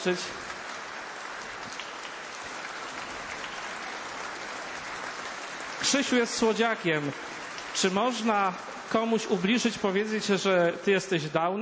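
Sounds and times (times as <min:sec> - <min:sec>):
speech: 0:00.0 - 0:00.5, 0:05.8 - 0:11.6
applause: 0:00.0 - 0:10.6.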